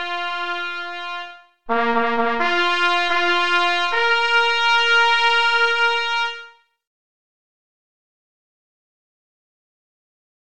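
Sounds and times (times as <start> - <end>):
trumpet call: 0.0 - 6.7.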